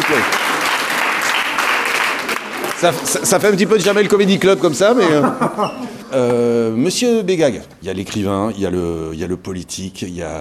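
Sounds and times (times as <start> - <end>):
audience applause at a live recorded event: 0.0 - 4.4
speech: 2.8 - 10.4
laughter: 3.9 - 6.7.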